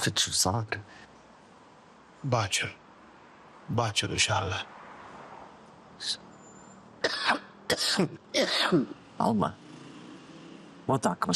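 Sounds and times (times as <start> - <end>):
speech: 0.0 - 1.1, 2.2 - 2.8, 3.7 - 4.8, 6.0 - 6.2, 7.3 - 9.6, 10.9 - 11.3
person ill with a cough lasting several days coughing: 7.0 - 9.0.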